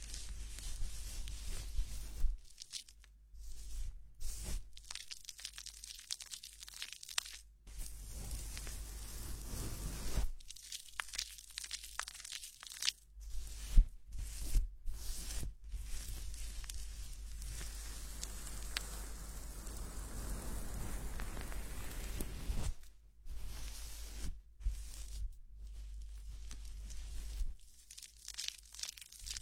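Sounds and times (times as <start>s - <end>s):
fingers rubbing and scrubbing through hair during head massage and hair wash: 0.0s - 29.4s.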